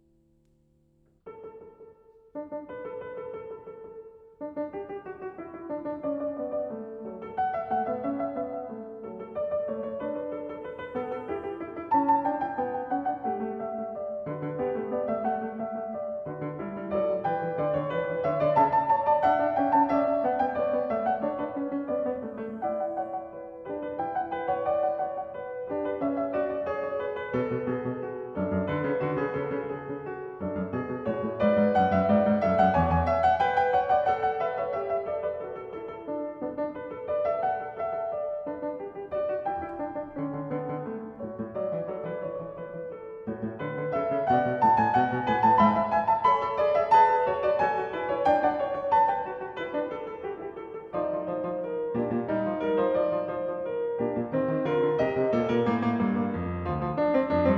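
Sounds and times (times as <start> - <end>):
piano fugue in D major: 1.1 - 57.5.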